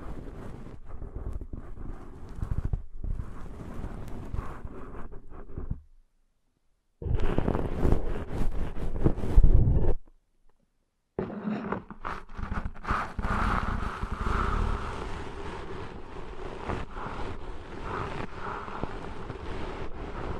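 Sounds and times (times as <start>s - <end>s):
ear cleaning scratching, rubbing and crackling: 0.0s - 5.9s, 7.0s - 10.1s, 11.2s - 20.3s.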